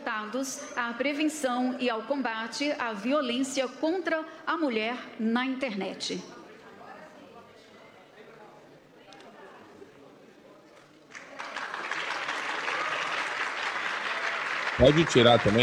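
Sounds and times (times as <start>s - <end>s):
speech: 0.1s - 6.4s, 14.8s - 15.6s
applause: 10.8s - 15.6s.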